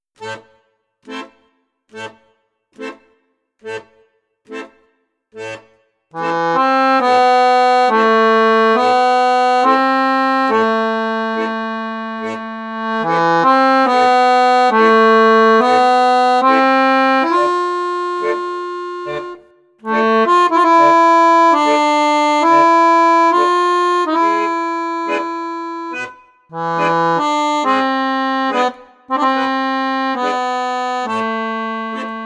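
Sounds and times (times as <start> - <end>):
accordion in bassoon register: 2.8 - 32.2.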